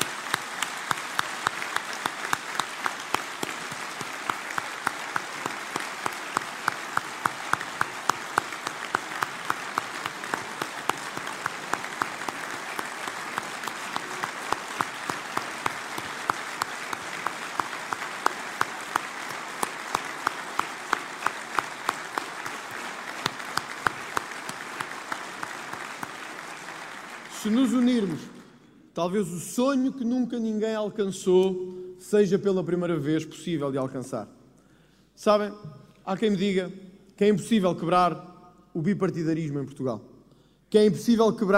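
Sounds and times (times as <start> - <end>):
large audience applause: 0.0 - 28.4
speech: 27.4 - 28.3, 29.0 - 34.4, 35.2 - 40.1, 40.7 - 41.5.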